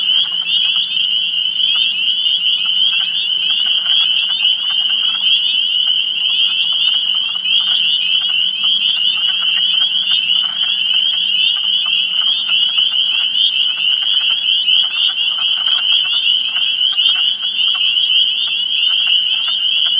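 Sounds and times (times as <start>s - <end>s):
spring peepers calling: 0.0s - 19.9s.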